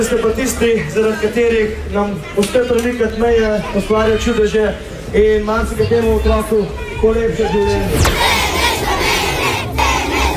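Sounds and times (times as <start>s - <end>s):
speech: 0.0s - 8.2s
roadside crowd and children cheering: 6.6s - 10.3s.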